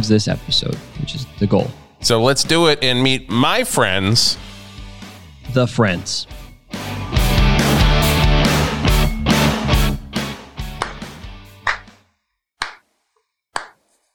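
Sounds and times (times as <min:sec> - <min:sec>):
speech: 0:00.0 - 0:04.5, 0:05.5 - 0:06.4
upbeat intro music: 0:00.0 - 0:06.0, 0:06.7 - 0:11.9
hands clapping along to intro music: 0:10.6 - 0:12.0, 0:12.6 - 0:13.0, 0:13.6 - 0:13.9.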